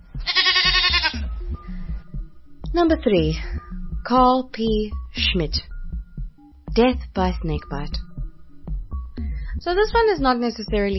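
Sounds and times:
mountain goat bleating: 0:00.2 - 0:01.3
speech: 0:02.7 - 0:05.7, 0:06.8 - 0:08.0, 0:09.6 - 0:10.9.

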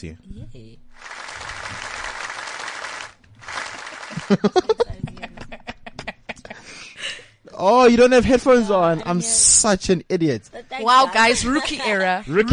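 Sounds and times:
speech: 0:00.0 - 0:01.9, 0:04.3 - 0:04.8, 0:07.6 - 0:12.5
round of applause: 0:01.0 - 0:04.6
laughter: 0:03.7 - 0:06.8.

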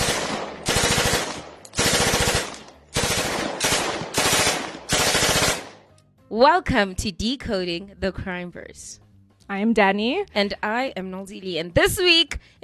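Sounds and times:
automatic gunfire from an ambush: 0:00.0 - 0:05.8
speech: 0:06.4 - 0:12.6.

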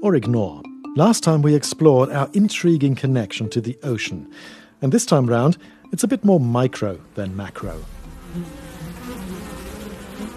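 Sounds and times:
speech: 0:00.0 - 0:08.7
bees buzzing: 0:06.8 - 0:10.3.

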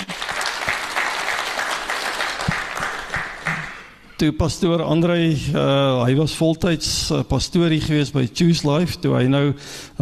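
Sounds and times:
crowd clapping: 0:00.0 - 0:04.0
speech: 0:04.2 - 0:09.9.

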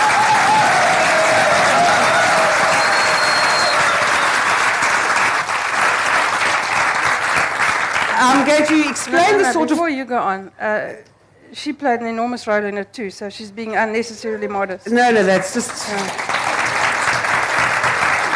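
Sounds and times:
audience applause: 0:00.0 - 0:09.5, 0:15.5 - 0:18.3
speech: 0:08.5 - 0:16.4.

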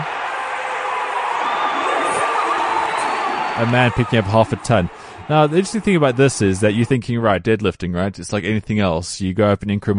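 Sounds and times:
crowd cheering: 0:00.0 - 0:07.1
speech: 0:03.6 - 0:09.9.

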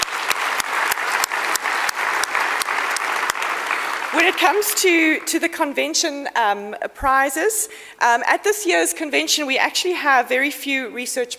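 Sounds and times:
audience applause: 0:00.0 - 0:05.4
speech: 0:04.1 - 0:11.3.

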